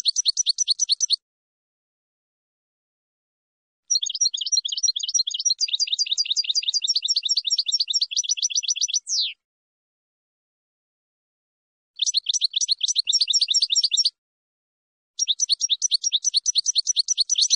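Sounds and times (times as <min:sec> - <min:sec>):
finch song: 0:00.0 - 0:01.2, 0:03.9 - 0:09.4, 0:12.0 - 0:14.2, 0:15.2 - 0:17.5.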